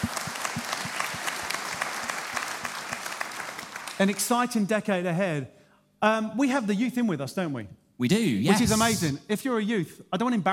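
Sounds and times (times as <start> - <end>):
crowd clapping: 0.0 - 4.6
speech: 4.0 - 10.5.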